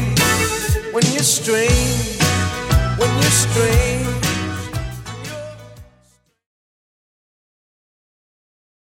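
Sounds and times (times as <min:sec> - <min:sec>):
1980s music at 118 bpm: 0:00.0 - 0:06.2.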